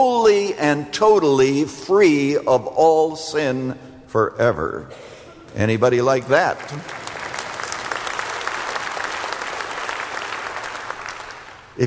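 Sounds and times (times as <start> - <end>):
speech: 0.0 - 7.0
audience applause: 6.2 - 11.8.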